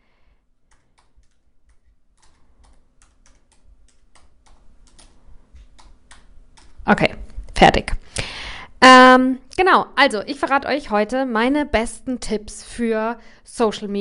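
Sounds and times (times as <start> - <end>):
keyboard typing as a note is written down: 0.6 - 6.9
speech: 6.9 - 7.8, 9.6 - 14.0.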